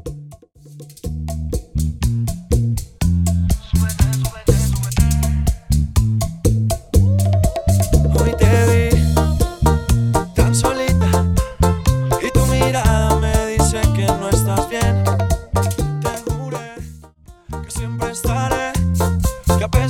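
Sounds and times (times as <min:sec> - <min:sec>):
bachata music at 122 BPM: 0:01.1 - 0:19.8.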